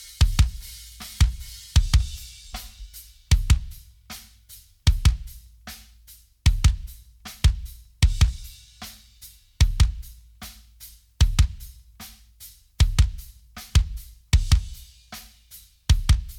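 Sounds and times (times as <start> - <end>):
kick drum: 0.0 - 4.1, 4.8 - 5.6, 6.4 - 8.8, 9.6 - 10.4, 11.2 - 11.9, 12.8 - 15.0, 15.9 - 16.3.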